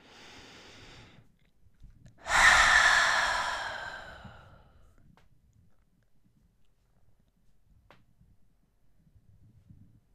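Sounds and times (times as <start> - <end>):
deep inhale and open-mouthed exhale during a yoga flow class: 0.0 - 1.2, 2.2 - 4.8.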